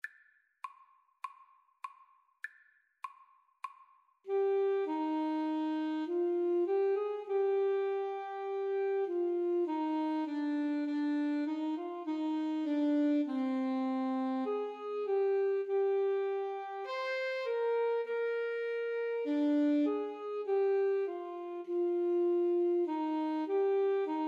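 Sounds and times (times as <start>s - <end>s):
alto saxophone duet: 4.3s - 24.2s.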